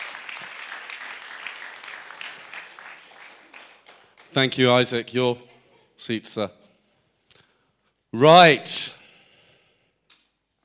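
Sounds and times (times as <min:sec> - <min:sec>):
audience applause: 0:00.0 - 0:04.4
speech: 0:04.3 - 0:06.6, 0:08.1 - 0:09.0.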